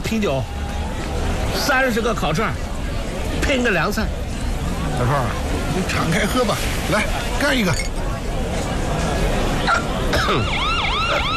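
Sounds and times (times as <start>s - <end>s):
crowd chatter and voices: 0.0s - 11.3s
speech: 0.1s - 0.6s, 1.6s - 2.7s, 3.3s - 4.2s, 5.0s - 7.9s, 9.8s - 11.3s
police siren wailing: 10.2s - 11.3s.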